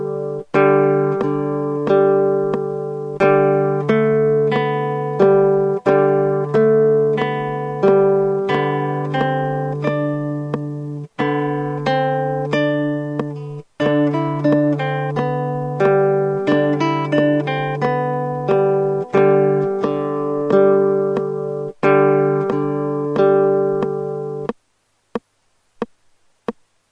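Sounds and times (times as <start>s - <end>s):
guitar practice: 0.0s - 26.6s.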